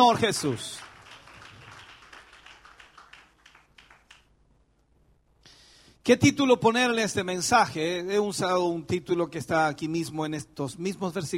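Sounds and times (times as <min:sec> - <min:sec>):
speech: 0:00.0 - 0:00.9, 0:06.1 - 0:11.3
church congregation clapping in praise: 0:00.0 - 0:04.4.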